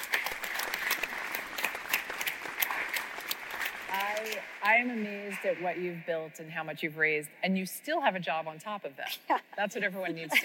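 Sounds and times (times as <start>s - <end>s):
audience applause: 0.0s - 5.7s
speech: 4.7s - 10.4s.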